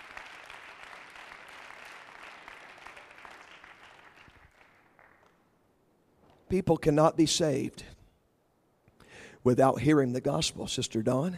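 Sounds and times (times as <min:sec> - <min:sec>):
audience clapping hands: 0:00.0 - 0:05.6
speech: 0:06.5 - 0:08.0, 0:09.4 - 0:11.3.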